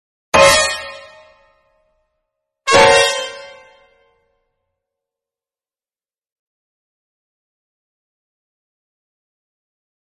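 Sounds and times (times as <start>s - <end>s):
witch spell fanfare: 0.4s - 1.5s, 2.7s - 3.9s.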